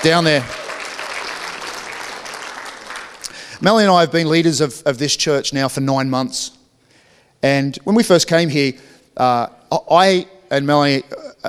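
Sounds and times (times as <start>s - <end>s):
speech: 0.0s - 0.6s, 3.6s - 6.6s, 7.4s - 11.4s
applause welcoming children into a church service: 0.0s - 3.9s.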